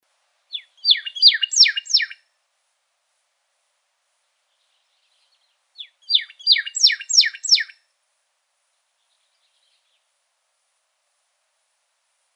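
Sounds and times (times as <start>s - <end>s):
pyrrhuloxia rising whistled call notes in Arizona: 0.5s - 2.2s, 5.8s - 7.8s.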